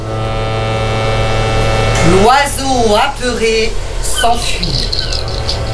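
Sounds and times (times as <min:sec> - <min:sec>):
foghorn long steady blast: 0:00.0 - 0:02.3
speech: 0:02.1 - 0:05.6.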